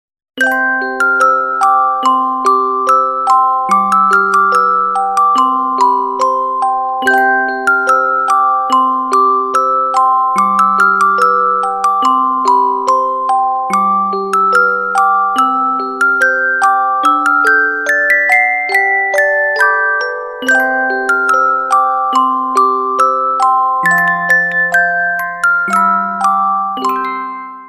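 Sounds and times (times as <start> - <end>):
Christmas carol: 0.5 - 27.6.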